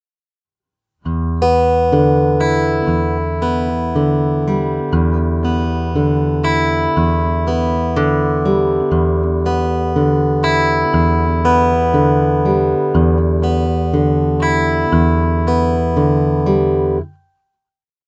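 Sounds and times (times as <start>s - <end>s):
fingerstyle acoustic guitar: 1.0s - 17.2s.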